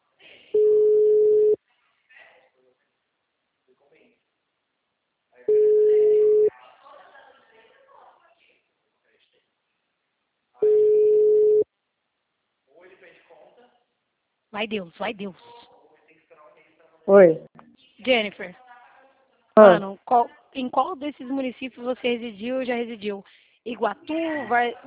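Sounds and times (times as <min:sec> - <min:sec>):
telephone line tone while placing a call: 0:00.6 - 0:01.6, 0:05.5 - 0:06.5, 0:10.6 - 0:11.6
speech: 0:14.6 - 0:15.6, 0:17.1 - 0:18.6, 0:19.6 - 0:24.8.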